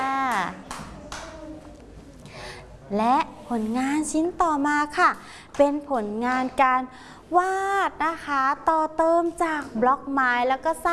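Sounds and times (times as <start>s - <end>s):
young children in a classroom clapping for classmates' artwork: 0.3s - 1.4s
child speaking in a classroom: 1.0s - 1.8s
speech: 2.9s - 10.9s.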